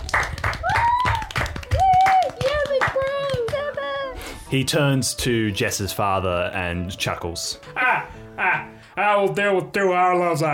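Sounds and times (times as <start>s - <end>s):
round of applause hand clapping: 0.0s - 4.1s
whooping whistle-like cheers: 0.5s - 3.3s
speech: 4.5s - 10.5s.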